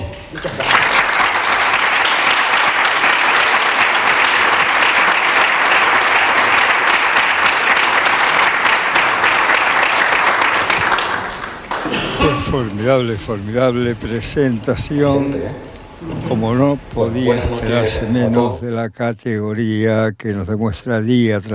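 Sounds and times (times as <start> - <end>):
warm audience applause: 0.0 - 13.7
speech: 12.4 - 15.7, 16.3 - 21.5.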